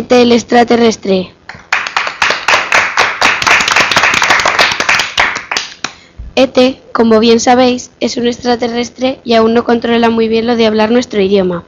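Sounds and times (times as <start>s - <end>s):
speech: 0.0s - 1.4s, 6.4s - 11.6s
audience applause: 1.7s - 5.8s.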